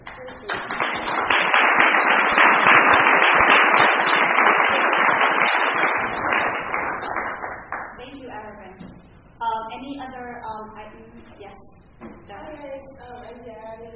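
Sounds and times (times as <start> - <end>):
audience applause: 0.0 - 8.0.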